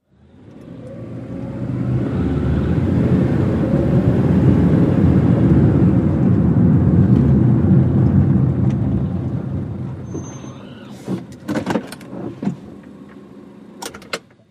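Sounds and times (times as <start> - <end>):
small compact car engine accelerating: 0.1 - 11.0.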